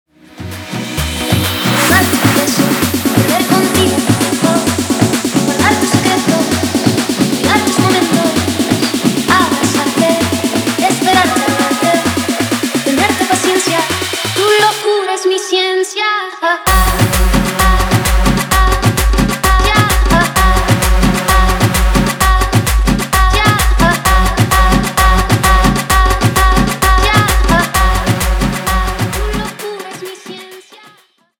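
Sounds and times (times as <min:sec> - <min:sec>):
guaracha remix music: 0:00.2 - 0:15.4, 0:16.7 - 0:31.0.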